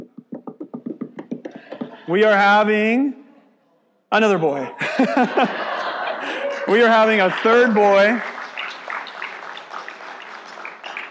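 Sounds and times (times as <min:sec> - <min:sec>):
laughter: 0:01.6 - 0:02.3, 0:04.6 - 0:08.3
speech: 0:02.1 - 0:03.2, 0:04.1 - 0:05.7, 0:06.7 - 0:08.3
crowd applause: 0:04.8 - 0:11.1.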